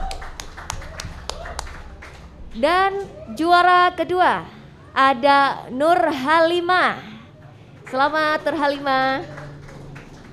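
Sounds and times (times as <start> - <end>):
applause for a competition winner: 0.0 - 2.4, 7.8 - 10.3
speech: 2.6 - 7.1, 7.9 - 9.4.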